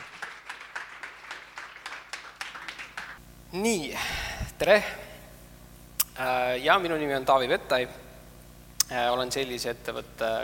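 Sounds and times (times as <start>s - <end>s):
audience applause: 0.0s - 3.2s
speech: 3.5s - 5.0s, 6.2s - 8.0s, 8.9s - 10.4s.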